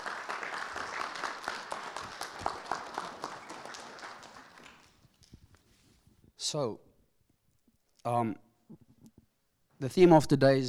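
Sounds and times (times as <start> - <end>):
audience applause: 0.0 - 5.0
speech: 6.5 - 6.9, 8.0 - 8.8, 9.8 - 10.6.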